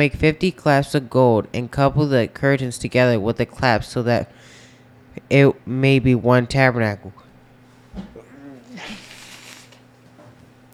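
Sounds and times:
speech: 0:00.0 - 0:04.6, 0:05.2 - 0:07.2
quiet hum: 0:00.0 - 0:10.7
sneeze: 0:08.0 - 0:09.8.

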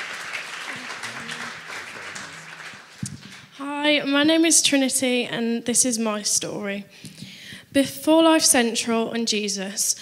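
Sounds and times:
crowd applauding: 0:00.0 - 0:03.6
speech: 0:03.6 - 0:10.0.

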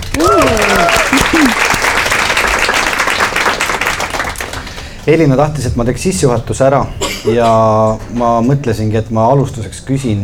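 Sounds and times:
audience applause: 0:00.0 - 0:05.1
speech: 0:00.2 - 0:00.6, 0:05.0 - 0:10.2.

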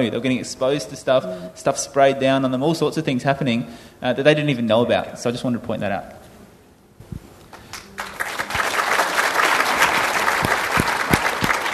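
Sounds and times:
speech: 0:00.0 - 0:06.2
audience clapping: 0:07.5 - 0:11.7.

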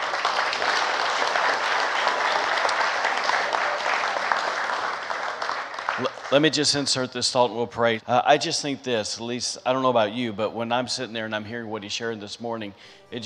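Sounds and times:
audience applause: 0:00.0 - 0:07.1
speech: 0:06.0 - 0:13.2.

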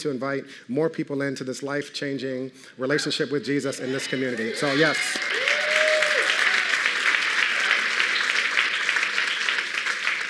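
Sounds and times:
speech: 0:00.0 - 0:05.6
audience applause: 0:03.9 - 0:10.2.

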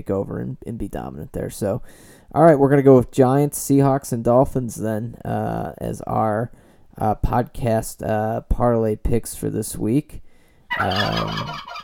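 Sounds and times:
speech: 0:00.0 - 0:11.8
person imitating turkey gobble: 0:10.7 - 0:11.8.

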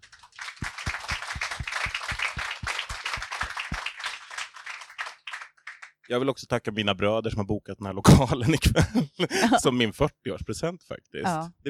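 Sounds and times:
audience applause: 0:00.0 - 0:06.0
speech: 0:06.1 - 0:11.6
laughter: 0:08.1 - 0:10.1.

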